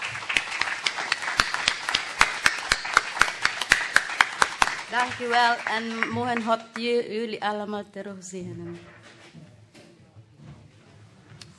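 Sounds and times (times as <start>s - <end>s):
crowd applause: 0.0s - 6.8s
speech: 4.9s - 9.5s.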